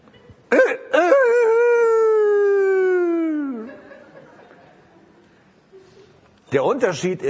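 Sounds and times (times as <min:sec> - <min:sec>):
man imitating a rooster crowing: 0:00.5 - 0:03.7
laughter: 0:00.5 - 0:06.2
speech: 0:06.5 - 0:07.2.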